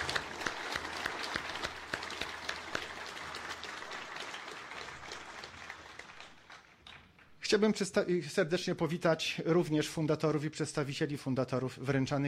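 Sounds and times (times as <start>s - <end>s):
audience applause: 0.0s - 7.2s
speech: 7.5s - 12.2s.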